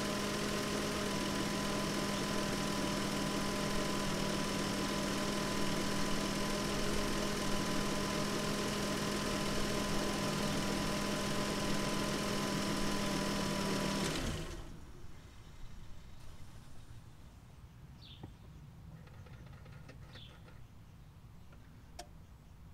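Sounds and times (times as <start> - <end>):
car engine idling: 0.0 - 16.2.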